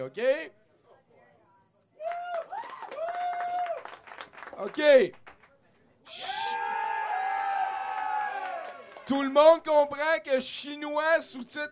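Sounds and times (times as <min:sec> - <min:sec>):
speech: 0:00.0 - 0:00.6, 0:04.6 - 0:05.2, 0:09.1 - 0:11.7
audience applauding: 0:02.0 - 0:05.5, 0:06.5 - 0:09.1.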